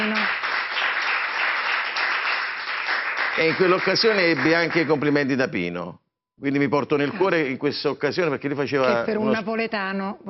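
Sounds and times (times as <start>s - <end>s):
audience applause: 0.0s - 5.3s
speech: 3.4s - 10.2s.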